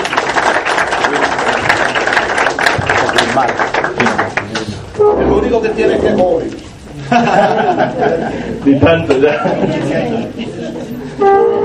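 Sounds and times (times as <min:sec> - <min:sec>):
crowd applauding: 0:00.0 - 0:05.0
speech: 0:05.5 - 0:11.6
laughter: 0:05.6 - 0:11.3.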